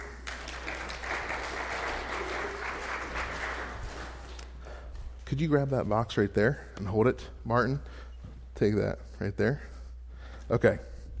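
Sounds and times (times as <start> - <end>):
audience applause: 0.0 - 4.4
speech: 5.3 - 9.7, 10.5 - 10.9.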